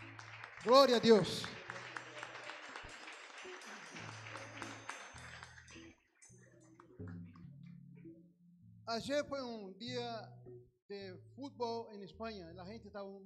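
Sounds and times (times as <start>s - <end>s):
audience applause: 0.0s - 6.0s
speech: 0.6s - 1.6s, 8.9s - 13.2s.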